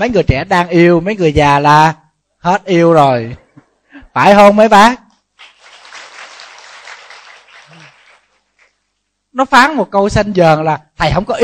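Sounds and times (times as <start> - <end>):
speech: 0.0 - 3.4, 4.2 - 5.0, 9.4 - 11.4
older audience clapping at a Buddhist talk: 5.4 - 8.9.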